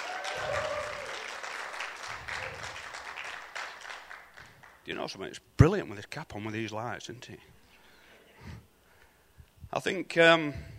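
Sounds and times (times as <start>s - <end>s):
audience applause for the band: 0.0s - 4.8s
speech: 4.9s - 7.6s, 9.8s - 10.7s.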